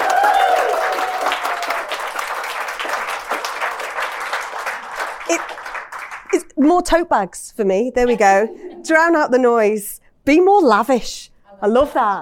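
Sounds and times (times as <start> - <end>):
audience applause: 0.0 - 6.4
speech: 6.6 - 12.2.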